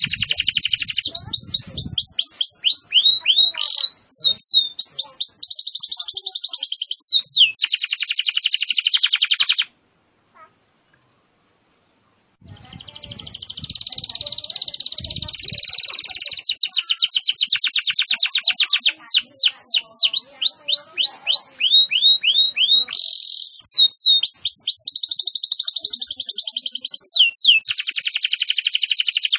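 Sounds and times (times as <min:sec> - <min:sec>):
canary singing vigorously: 0:00.0 - 0:09.8, 0:12.4 - 0:29.3.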